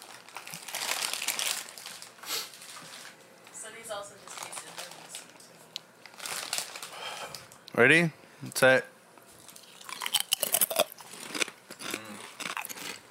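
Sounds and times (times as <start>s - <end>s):
crinkling bag of salted chips: 0.0s - 3.2s, 4.2s - 5.4s, 6.0s - 7.1s, 9.4s - 13.0s
speech: 3.9s - 4.3s, 7.8s - 8.9s.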